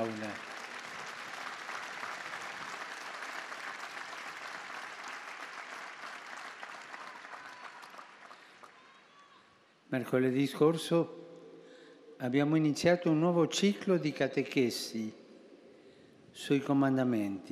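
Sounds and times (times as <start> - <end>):
audience applause: 0.0 - 9.4
speech: 9.9 - 11.2, 12.2 - 15.2, 16.4 - 17.4.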